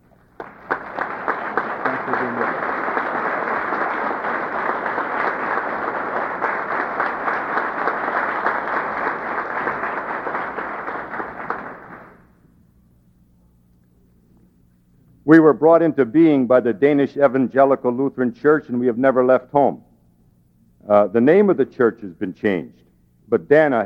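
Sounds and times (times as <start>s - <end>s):
audience applause: 0.0s - 12.2s
speech: 15.3s - 19.8s, 20.9s - 23.8s.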